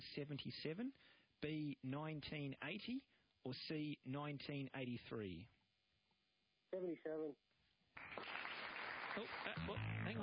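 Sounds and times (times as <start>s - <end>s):
speech: 0.0s - 5.6s, 6.7s - 7.4s, 8.0s - 8.3s, 9.2s - 10.2s
premature applause: 8.0s - 9.8s.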